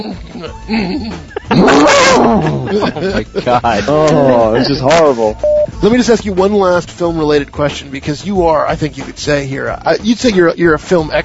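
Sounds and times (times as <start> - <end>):
speech: 0.0 - 11.2
laughter: 0.7 - 5.3
horse making distressed noises: 1.5 - 2.7.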